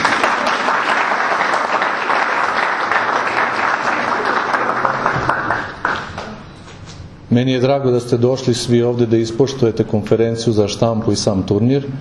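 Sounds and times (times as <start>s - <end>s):
audience applause at a press conference for a Belgrade basketball tournament: 0.0s - 6.4s
speech: 7.3s - 11.9s.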